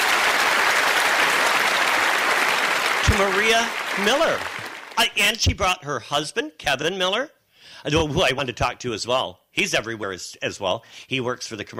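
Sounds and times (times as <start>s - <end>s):
audience applause at a show: 0.0s - 5.3s
speech: 3.2s - 11.7s.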